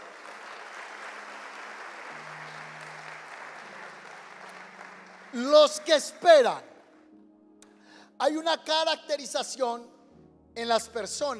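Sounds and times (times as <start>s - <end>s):
audience applause: 0.0s - 6.5s
speech: 5.3s - 6.7s, 8.2s - 10.0s, 10.6s - 11.3s.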